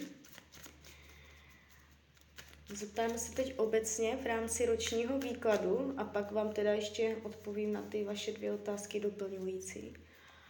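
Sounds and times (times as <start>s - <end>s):
cards drawn from a deck: 0.0s - 3.6s, 4.7s - 5.8s
speech: 2.7s - 10.1s.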